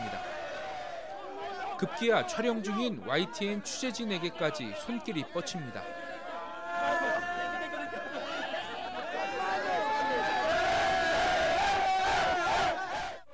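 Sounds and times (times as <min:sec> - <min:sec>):
laughter: 0:00.0 - 0:13.1
football fans cheering and shouting: 0:00.0 - 0:13.3
speech: 0:01.8 - 0:06.0.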